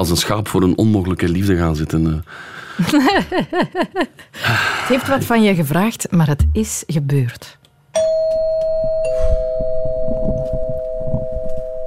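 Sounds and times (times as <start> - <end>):
speech: 0.0 - 7.6
laughter: 2.8 - 4.3
doorbell ringing: 8.0 - 11.8.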